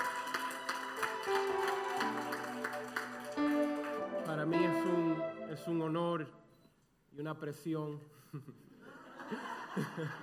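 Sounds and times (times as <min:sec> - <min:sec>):
audience applauding: 0:00.0 - 0:05.2
speech: 0:04.4 - 0:06.4, 0:07.1 - 0:08.7, 0:09.3 - 0:10.2
laughter: 0:08.3 - 0:10.2.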